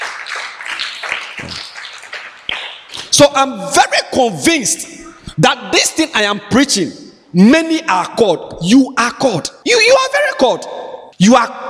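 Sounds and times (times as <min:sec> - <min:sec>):
crowd clapping: 0:00.0 - 0:03.2
speech: 0:03.2 - 0:11.6.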